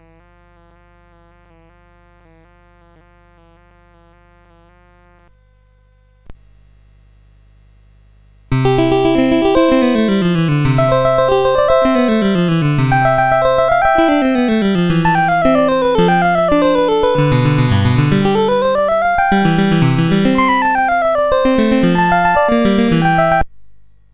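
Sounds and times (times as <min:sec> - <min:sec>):
prelude piece: 0:08.5 - 0:23.4.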